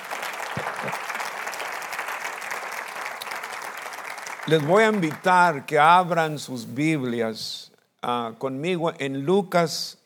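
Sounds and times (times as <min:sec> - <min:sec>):
audience clapping: 0:00.0 - 0:06.1
speech: 0:04.5 - 0:10.0.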